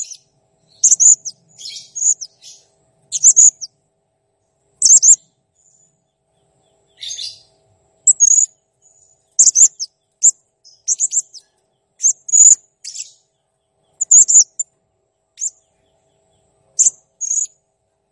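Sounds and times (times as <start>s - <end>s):
blue-crowned hanging parrot chirping and squeaking: 0.0s - 3.7s, 4.8s - 5.9s, 6.7s - 7.5s, 8.1s - 13.3s, 13.9s - 14.6s, 15.4s - 17.6s.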